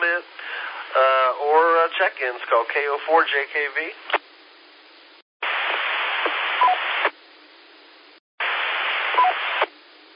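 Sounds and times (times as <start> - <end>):
speech: 1.0 - 4.2
radio roger beeps on transmission: 5.5 - 7.1, 8.5 - 9.7.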